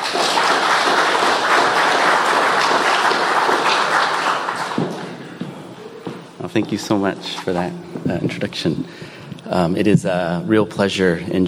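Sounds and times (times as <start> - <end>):
audience applause: 0.0 - 5.8
speech: 6.6 - 11.4.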